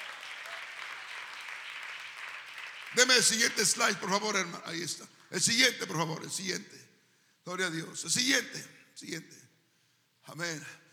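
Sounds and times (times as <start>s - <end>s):
audience applause: 0.0s - 3.6s
speech: 2.9s - 9.4s, 10.3s - 10.8s.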